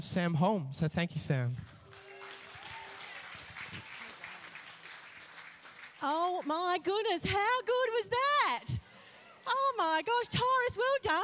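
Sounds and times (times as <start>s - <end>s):
speech: 0.0s - 1.8s, 6.0s - 8.8s, 9.5s - 11.2s
audience applause: 1.8s - 6.6s.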